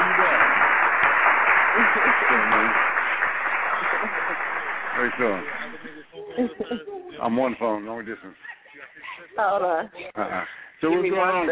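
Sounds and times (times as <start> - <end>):
applause sound effect: 0.0 - 6.1
laughter: 0.0 - 7.5, 8.2 - 10.3
speech: 5.0 - 5.8, 6.4 - 8.5, 9.4 - 11.5.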